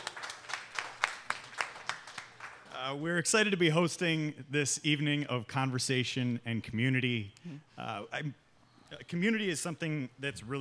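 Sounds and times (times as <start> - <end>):
audience clapping: 0.0 - 2.8
speech: 2.9 - 10.5.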